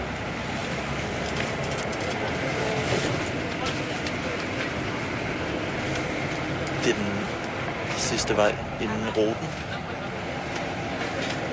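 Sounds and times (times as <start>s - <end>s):
car driving down a residential road: 0.0s - 11.5s
speech: 6.8s - 7.3s, 8.1s - 9.8s.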